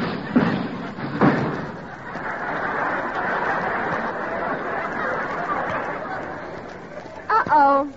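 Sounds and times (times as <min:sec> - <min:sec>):
crash as something smashes through a roof: 0:00.0 - 0:02.0
laughter: 0:00.4 - 0:07.4.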